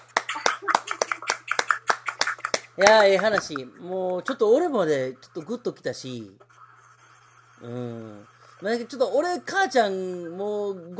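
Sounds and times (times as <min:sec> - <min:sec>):
small group clapping in a steady rhythm: 0:00.0 - 0:03.7
speech: 0:02.8 - 0:06.5, 0:07.6 - 0:10.9.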